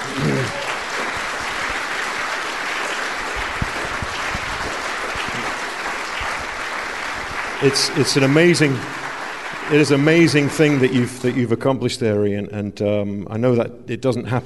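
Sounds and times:
audience applause: 0.0s - 11.5s
speech: 7.6s - 9.0s, 9.7s - 14.4s.

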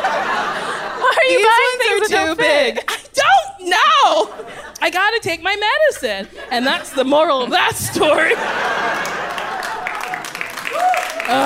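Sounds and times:
laughter: 0.0s - 3.2s, 3.8s - 5.2s, 5.8s - 11.4s
speech: 1.4s - 3.0s, 3.6s - 9.1s, 11.3s - 11.4s
audience clapping: 8.2s - 11.4s.

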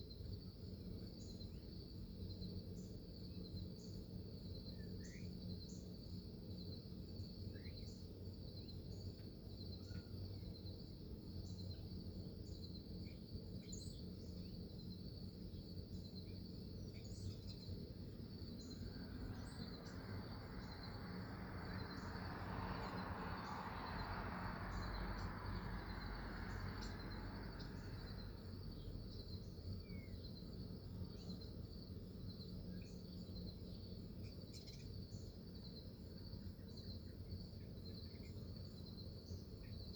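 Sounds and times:
bugs on a September morning in Salina, Kansas: 0.0s - 39.9s
birds on a September morning in Salina, Kansas: 1.0s - 39.9s.

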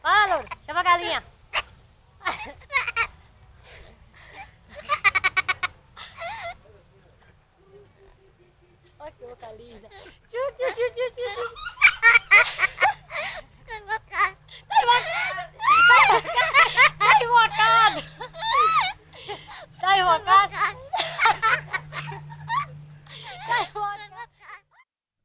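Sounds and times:
girl laughing in Bahia, Brazil: 2.2s - 3.2s, 4.2s - 6.6s, 9.8s - 24.8s
parrot laughing in Bahia, Brazil: 4.7s - 6.6s, 11.1s - 24.8s.

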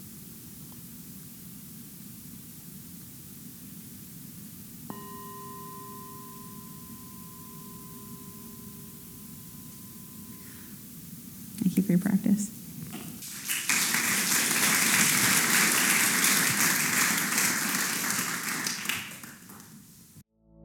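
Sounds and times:
constant hiss: 0.0s - 20.2s
meditation bell ringing: 4.9s - 11.6s
speech: 11.9s - 12.6s.

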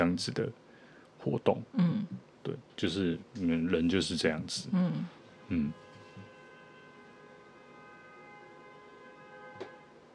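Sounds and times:
speech: 0.0s - 0.6s, 1.2s - 5.8s
car horn honking repeatedly: 5.2s - 10.1s.

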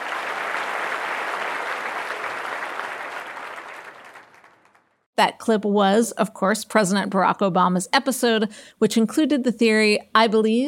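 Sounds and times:
audience applause: 0.0s - 5.0s
speech: 5.2s - 10.6s.

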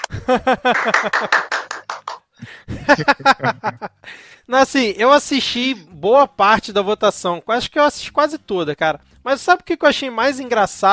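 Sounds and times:
laughter: 0.0s - 1.8s, 2.6s - 4.0s
applause: 0.0s - 2.3s
speech: 0.3s - 1.6s, 2.4s - 3.6s, 4.5s - 10.9s.

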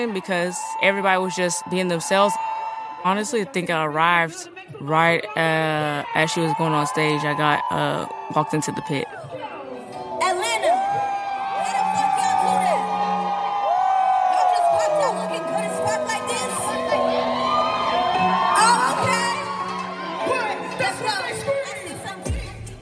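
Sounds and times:
speech: 0.0s - 9.3s
festival crowd cheering and yelling: 0.0s - 22.8s.

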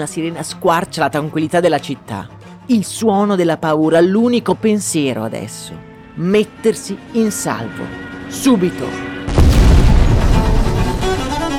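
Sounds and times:
speech: 0.0s - 9.1s
bomb explosion: 9.3s - 11.5s
crackling debris: 9.3s - 11.5s.

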